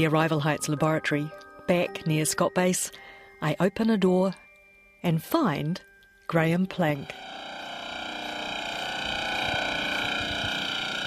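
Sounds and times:
speech: 0:00.0 - 0:04.4, 0:05.0 - 0:07.4
MF radar transmitter firing rapid pulses: 0:06.8 - 0:11.0.

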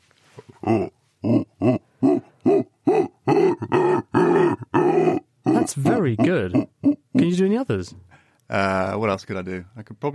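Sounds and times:
person imitating howler monkey call: 0:00.5 - 0:07.3
speech: 0:00.7 - 0:01.0, 0:06.0 - 0:06.6, 0:07.6 - 0:10.1.

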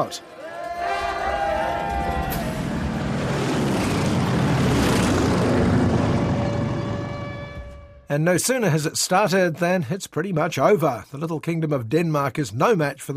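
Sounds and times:
speech: 0:00.0 - 0:00.4, 0:08.1 - 0:13.1
low-flying propeller planes passing overhead: 0:01.2 - 0:08.0.

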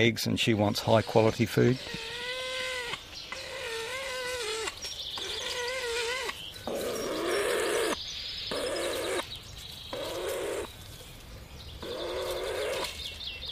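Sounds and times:
speech: 0:00.0 - 0:02.2
weka nasal calls: 0:00.8 - 0:09.3, 0:11.8 - 0:13.2.

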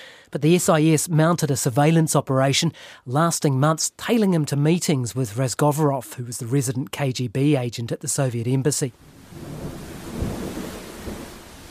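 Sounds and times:
speech: 0:00.3 - 0:09.8
gusty wind: 0:09.0 - 0:11.7
low thunder rumbling: 0:09.0 - 0:11.7
steady rain on a stormy night: 0:09.0 - 0:11.7.

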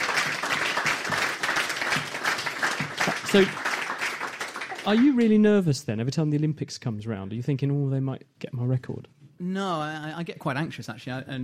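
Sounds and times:
audience clapping: 0:00.0 - 0:05.6
speech: 0:03.3 - 0:03.6, 0:04.8 - 0:11.4.

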